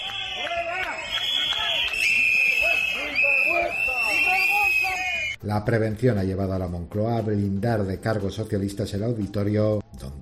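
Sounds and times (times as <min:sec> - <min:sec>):
crowd booing in the street: 0:00.0 - 0:05.3
speech: 0:05.4 - 0:09.8.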